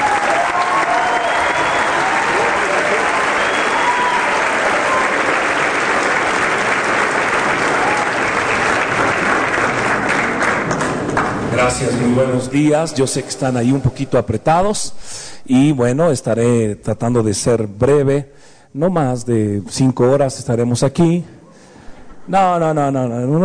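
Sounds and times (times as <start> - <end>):
audience applause: 0.0 - 12.2
speech: 11.8 - 21.4, 22.3 - 23.4.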